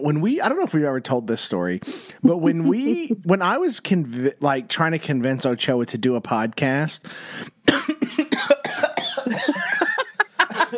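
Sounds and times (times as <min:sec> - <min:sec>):
speech: 0:00.0 - 0:07.8
person coughing with something like a dust mote caught in the throat: 0:07.7 - 0:10.0
laughter: 0:09.2 - 0:10.7.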